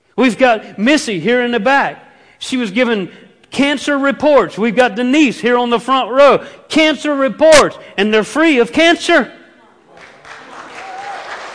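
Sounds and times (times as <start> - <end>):
speech: 0.2 - 9.4
audience clapping: 9.9 - 11.5.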